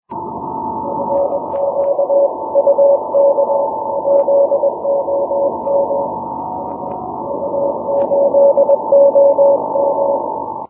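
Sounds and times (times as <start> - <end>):
6m CW morse code signal: 0.1 - 10.6.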